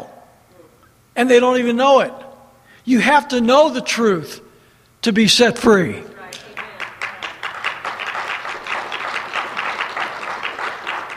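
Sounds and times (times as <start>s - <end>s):
speech: 1.2s - 2.2s, 2.8s - 4.4s, 5.0s - 6.4s
few people clapping: 6.3s - 11.1s.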